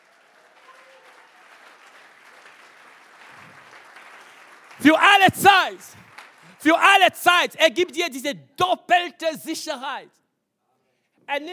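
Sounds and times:
audience applause: 0.0 - 7.3
speech: 4.8 - 6.0, 6.6 - 10.2, 11.3 - 11.5.

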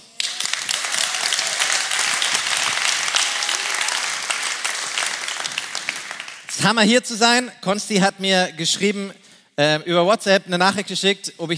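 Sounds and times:
audience applause in church: 0.0 - 6.6
speech: 6.6 - 11.5.

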